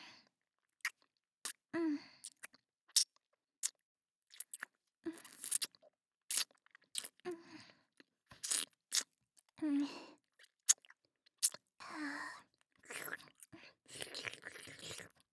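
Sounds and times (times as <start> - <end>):
fellatio sounds: 0.8 - 3.0, 4.3 - 7.7, 8.3 - 12.1, 12.8 - 15.3.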